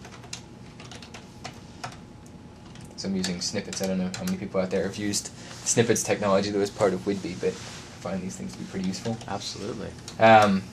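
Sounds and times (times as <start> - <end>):
typing code on a computer keyboard: 0.0 - 4.5
speech: 3.0 - 10.7.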